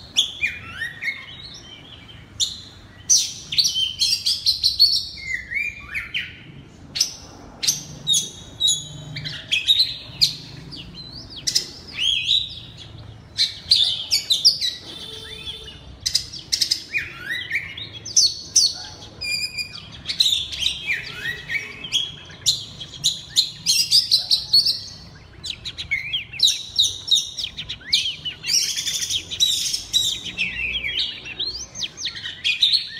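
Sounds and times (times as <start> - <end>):
Oriental magpie-robin singing: 0.0 - 32.9.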